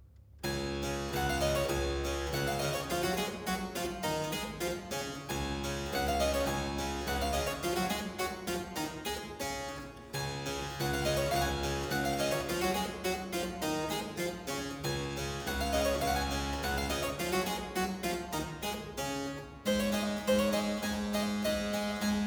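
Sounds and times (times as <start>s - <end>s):
musette music: 0.4s - 22.2s.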